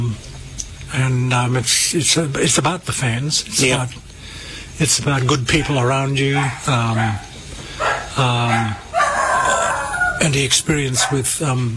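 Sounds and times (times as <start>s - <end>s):
speech: 0.9s - 4.1s, 4.8s - 7.3s, 8.2s - 8.8s, 10.2s - 11.7s
dogs barking and yipping: 5.6s - 11.6s.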